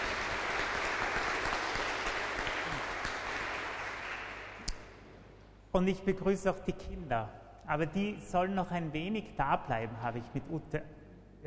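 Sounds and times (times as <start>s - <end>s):
audience applause: 0.0s - 4.7s
speech: 5.8s - 11.4s.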